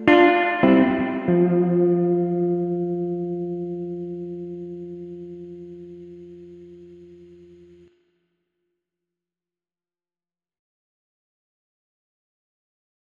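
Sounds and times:
surf guitar: 0:00.0 - 0:07.8.

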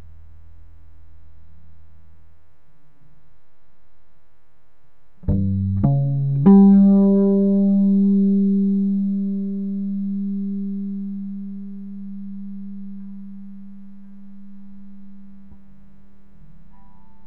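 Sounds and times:
blues duet: 0:05.2 - 0:15.6.

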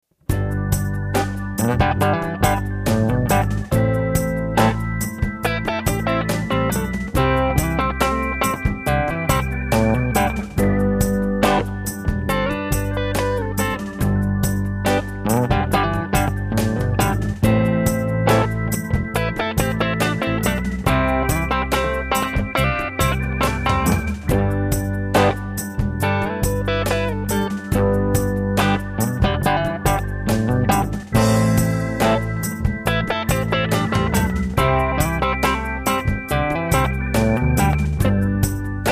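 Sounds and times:
slow sixties style music: 0:00.3 - 0:38.9.

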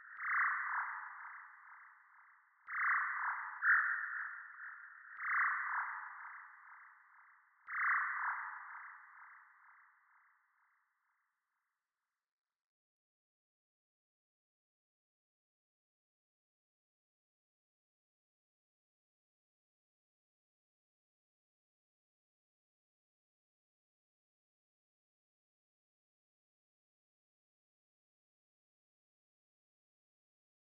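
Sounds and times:
jungle bird: 0:00.0 - 0:10.9.

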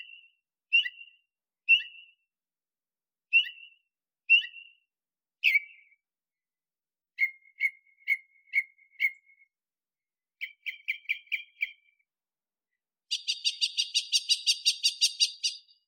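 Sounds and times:
nightingale singing rattling pulsed phrases in a desert: 0:00.0 - 0:02.4, 0:03.3 - 0:06.2, 0:07.2 - 0:09.6, 0:10.4 - 0:15.8.

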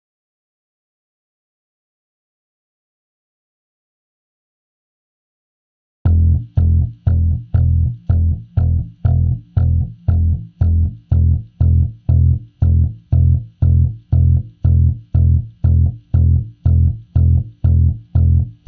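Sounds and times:
rhythm groove: 0:06.1 - 0:18.6.

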